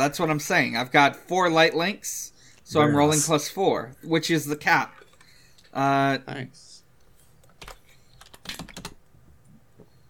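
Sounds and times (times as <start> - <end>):
speech: 0.0 - 5.0, 5.7 - 6.7
typing notes on a computer keyboard: 7.4 - 9.0.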